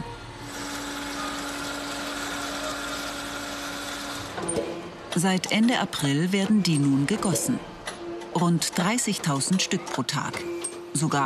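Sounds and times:
metal powder 3D printer sparking: 0.4s - 4.5s
speech: 4.4s - 7.7s, 8.4s - 11.2s.

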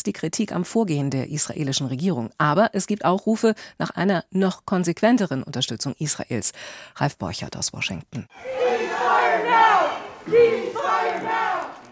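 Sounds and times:
speech: 0.0s - 11.4s
protesters shouting in Senate gallery: 8.3s - 11.9s.

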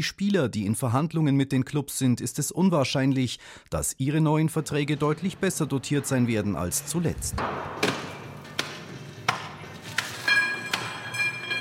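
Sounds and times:
speech: 0.0s - 8.0s
ice being hacked apart in a stadium: 7.8s - 11.6s.

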